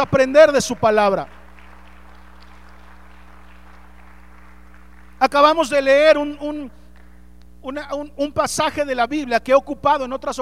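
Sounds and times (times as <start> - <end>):
speech: 0.0 - 1.4, 5.2 - 6.8, 7.6 - 10.3
audience applauding: 0.0 - 5.4
low electrical hum: 0.0 - 10.3.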